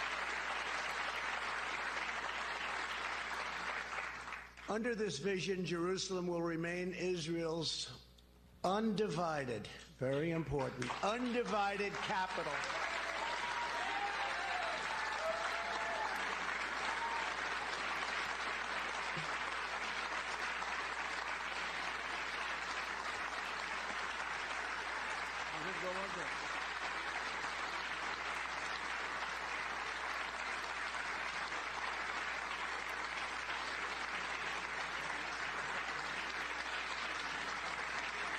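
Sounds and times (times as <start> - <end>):
long applause from a large audience: 0.0 - 4.7, 10.6 - 38.3
speech: 4.7 - 8.0, 8.6 - 12.8.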